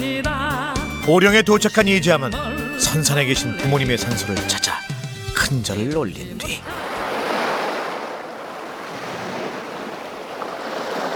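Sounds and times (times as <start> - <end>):
speech: 1.0 - 4.9, 5.5 - 6.9
wind: 5.4 - 11.1
waves washing against the seashore at Boryeong: 6.4 - 11.1.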